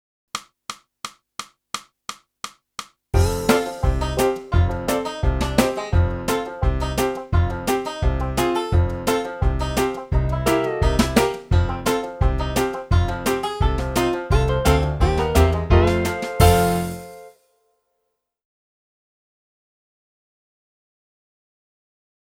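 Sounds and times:
clarinet: 3.2 - 17.3.

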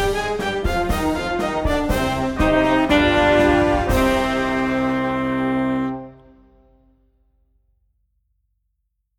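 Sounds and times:
march played on saxophones: 0.0 - 6.8.

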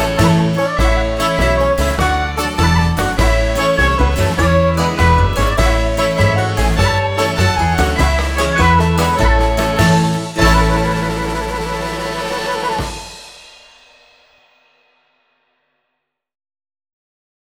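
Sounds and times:
backing track: 0.0 - 13.8.

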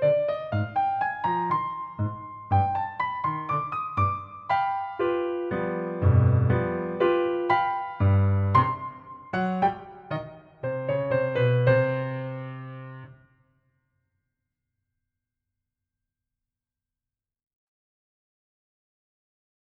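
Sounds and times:
piano: 0.0 - 13.7.

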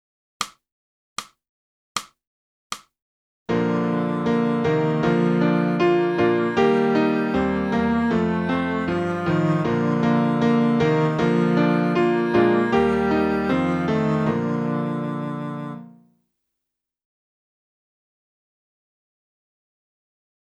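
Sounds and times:
saxophone: 3.5 - 16.0.

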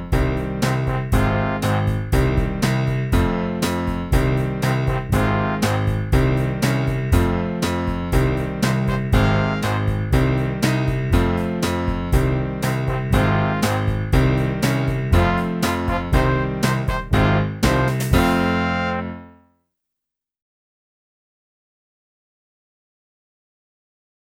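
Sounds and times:
clarinet: 0.2 - 3.4, 4.1 - 19.4.

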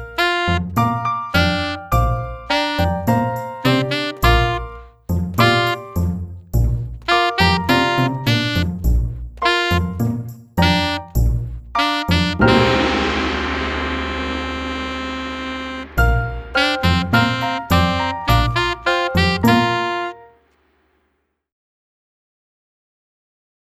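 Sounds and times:
saxophone: 0.1 - 6.0, 7.1 - 11.2, 11.8 - 20.4.

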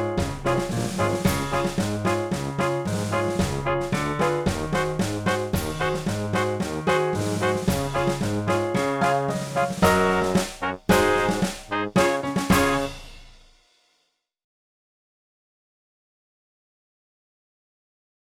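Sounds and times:
saxophone playing a march: 0.0 - 13.2.

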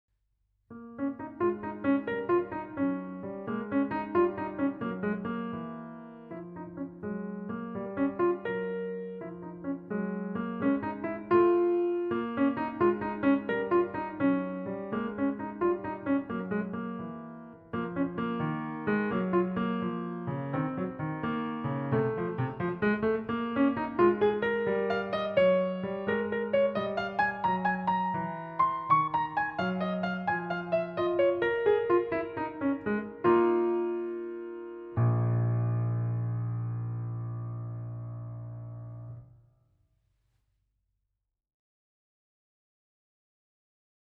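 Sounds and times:
piano: 0.7 - 39.6.

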